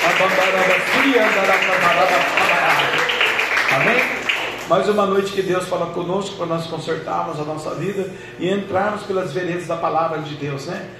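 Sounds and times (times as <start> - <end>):
audience clapping: 0.0 - 5.1
speech: 0.2 - 10.9.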